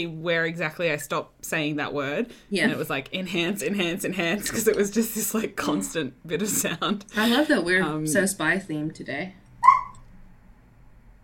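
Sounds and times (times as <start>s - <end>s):
speech: 0.0s - 9.4s
dog whining at the door: 9.6s - 10.1s.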